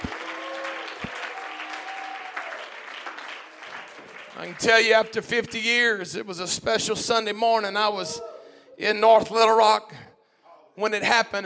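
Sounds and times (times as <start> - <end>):
audience clapping: 0.0 - 6.0
speech: 4.4 - 10.1, 10.8 - 11.4.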